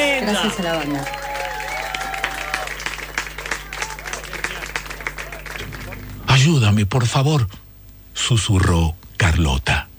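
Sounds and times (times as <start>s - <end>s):
audience applause for a band after a performance: 0.0s - 6.4s
speech: 0.2s - 1.2s, 6.4s - 7.6s, 8.2s - 9.8s.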